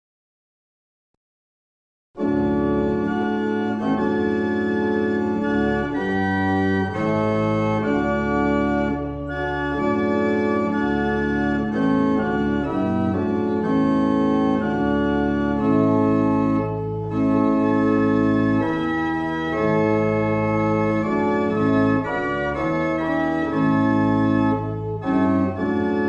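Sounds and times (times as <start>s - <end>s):
barrel organs in Truro: 2.2s - 26.0s.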